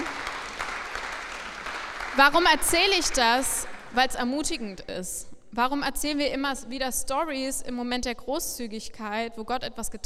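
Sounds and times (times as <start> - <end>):
audience applause: 0.0 - 4.2
speech: 2.2 - 10.0.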